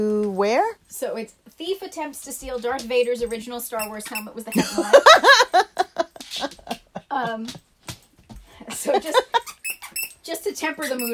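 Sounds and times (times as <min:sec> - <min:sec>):
speech: 0:00.0 - 0:05.8, 0:06.4 - 0:07.7, 0:08.7 - 0:09.5, 0:10.3 - 0:11.1
puppy squeaking: 0:03.7 - 0:04.7, 0:09.3 - 0:11.1.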